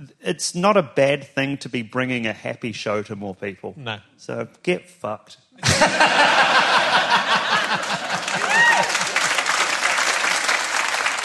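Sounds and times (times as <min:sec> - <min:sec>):
speech: 0:00.0 - 0:07.3
people laughing: 0:05.6 - 0:09.4
audience clapping: 0:06.6 - 0:11.2
people whooping: 0:07.8 - 0:09.8.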